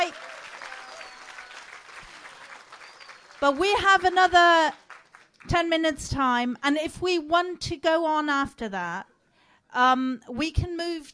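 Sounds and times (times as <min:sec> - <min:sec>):
audience applause in a tent: 0:00.0 - 0:05.4
speech: 0:03.4 - 0:04.8, 0:05.5 - 0:09.1, 0:09.7 - 0:11.1.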